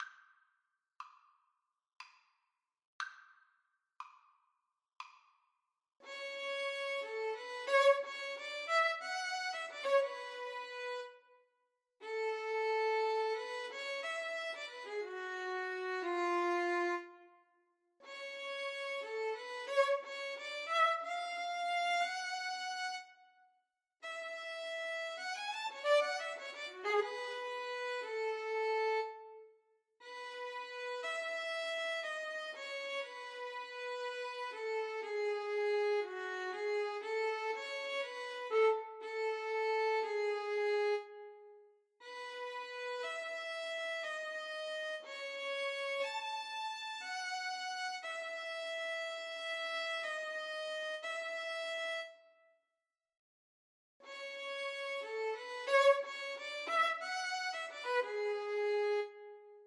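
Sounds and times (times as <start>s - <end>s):
adagio violin duet: 6.1s - 11.2s, 12.0s - 17.2s, 18.1s - 23.1s, 24.1s - 29.4s, 30.0s - 41.3s, 42.0s - 52.2s, 54.1s - 59.5s.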